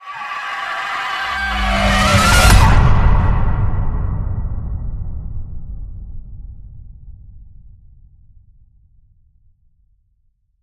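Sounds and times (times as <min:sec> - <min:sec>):
vampire night scream hit: 0:00.0 - 0:03.6.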